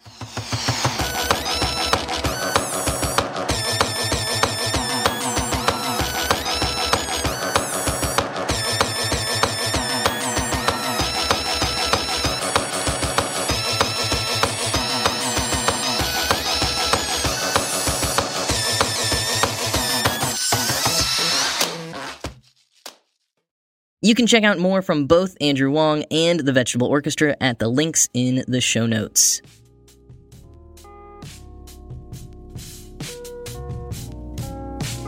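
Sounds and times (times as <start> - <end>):
pop melody played on whining dental drills: 0.0 - 22.2
speech: 24.1 - 29.6.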